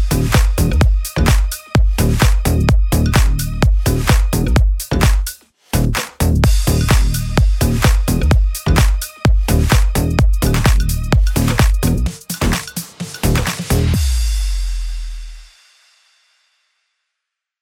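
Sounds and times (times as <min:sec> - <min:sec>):
slap house music in D sharp minor: 0:00.0 - 0:15.0.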